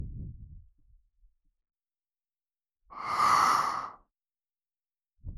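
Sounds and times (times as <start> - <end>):
gentle ASMR blowing into the right ear: 3.0 - 4.0.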